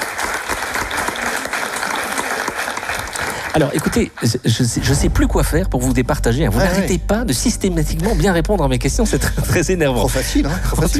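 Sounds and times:
crowd applauding: 0.0s - 4.7s
speech: 3.6s - 10.9s.

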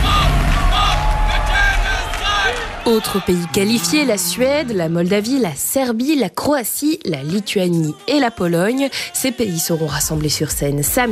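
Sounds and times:
audience whistling: 0.0s - 4.7s
speech: 2.9s - 11.1s.

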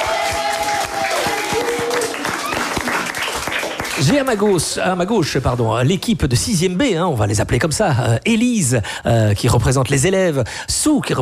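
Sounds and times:
cheers: 0.0s - 4.2s
audience applause: 0.0s - 4.7s
speech: 4.0s - 11.2s.

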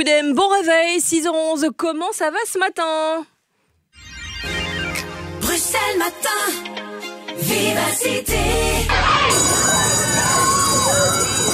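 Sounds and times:
speech: 0.0s - 3.3s, 5.7s - 6.8s, 7.4s - 9.7s
school bell ringing: 9.3s - 11.5s.

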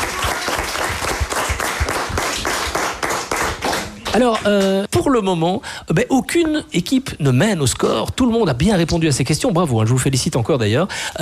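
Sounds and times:
audience applause: 0.0s - 4.6s
speech: 4.1s - 11.1s.

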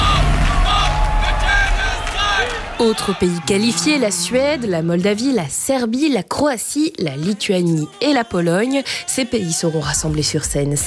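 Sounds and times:
crowd whistling: 0.0s - 5.1s
speech: 2.8s - 10.8s.

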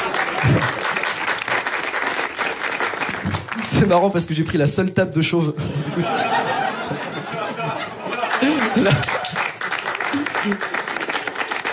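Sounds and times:
laughter: 0.0s - 1.2s, 5.6s - 11.2s
comedy show audience applause: 0.0s - 3.7s, 8.0s - 11.7s
speech: 3.8s - 6.5s, 8.8s - 9.2s.

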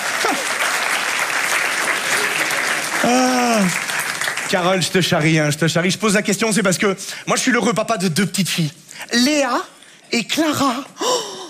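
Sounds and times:
voice over applause: 0.0s - 4.8s
audience applause: 0.0s - 5.4s
speech: 3.0s - 3.8s, 4.5s - 11.3s.

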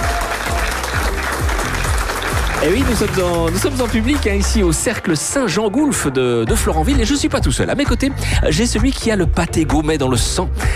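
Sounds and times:
live audience applause at the Cercle Saint-Jean-Golf in Florenville: 0.0s - 5.2s
speech: 2.6s - 10.7s.

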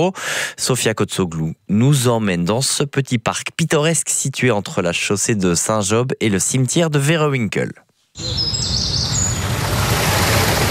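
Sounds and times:
speech: 0.0s - 9.0s
birds singing: 8.2s - 9.6s.

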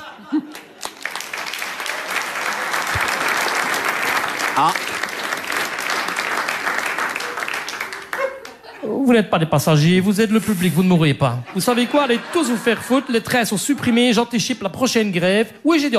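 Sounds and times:
laughter: 0.0s - 1.1s, 7.1s - 9.1s, 11.4s - 14.3s
live audience applause: 0.0s - 8.6s
speech: 4.6s - 4.9s, 9.0s - 15.9s.

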